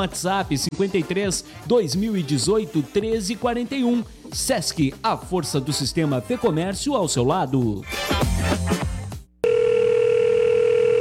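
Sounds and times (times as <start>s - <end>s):
speech: 0.0s - 8.8s
telephone ringing tone while calling the state government: 9.4s - 10.9s.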